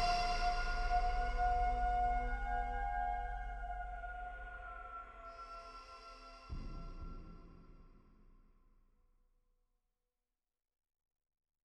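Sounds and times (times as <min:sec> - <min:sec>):
ritual dark ambient music: 0:00.0 - 0:08.4.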